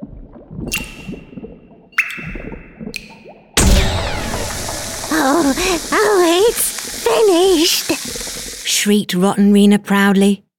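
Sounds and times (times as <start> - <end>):
magic potion bubbling and gurgling: 0.0 - 8.9
loud sustained fizzing rush: 3.6 - 8.9
speech: 5.2 - 8.2, 8.8 - 10.4.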